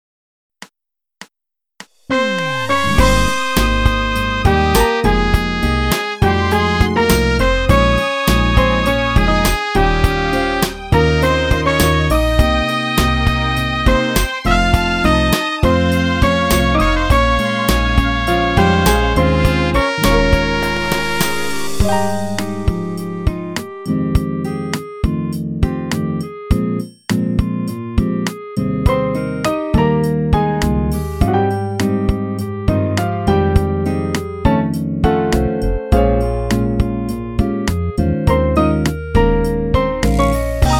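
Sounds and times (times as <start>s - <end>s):
instrumental melody backing track: 2.1s - 40.7s.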